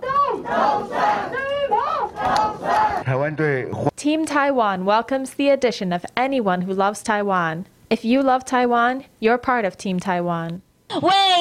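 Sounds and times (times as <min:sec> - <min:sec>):
group of lawmakers cheering and chanting: 0:00.0 - 0:03.0
speech: 0:03.1 - 0:11.3.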